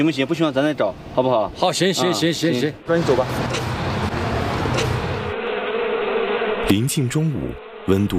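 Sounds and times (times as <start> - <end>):
speech: 0.0 - 3.8, 6.7 - 8.1
bees buzzing in large numbers as they escape their hives on a hot late morning: 3.0 - 8.1.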